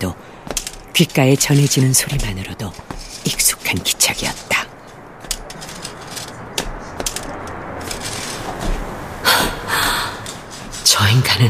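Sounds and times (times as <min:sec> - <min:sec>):
speech: 0:00.0 - 0:00.2, 0:01.0 - 0:02.8, 0:03.4 - 0:04.6, 0:11.0 - 0:11.4
walking cane tapping and dragging on asphalt: 0:00.5 - 0:11.0.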